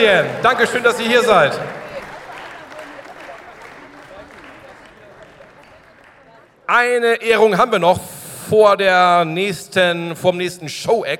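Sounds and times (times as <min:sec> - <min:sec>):
speech: 0:00.0 - 0:01.8, 0:06.7 - 0:11.1
audience clapping: 0:00.0 - 0:06.8.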